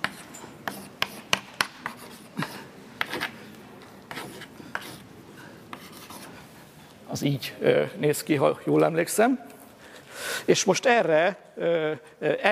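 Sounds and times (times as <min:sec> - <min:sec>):
chalk or marker scratching on a board during a lecture: 0:00.0 - 0:03.4, 0:04.1 - 0:05.1, 0:05.7 - 0:06.4
speech: 0:07.2 - 0:09.5, 0:10.5 - 0:12.5.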